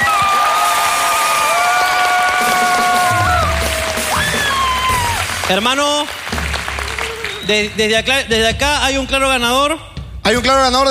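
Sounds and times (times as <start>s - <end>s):
audience applause: 0.0s - 8.0s
speech: 5.5s - 6.2s, 7.5s - 10.8s.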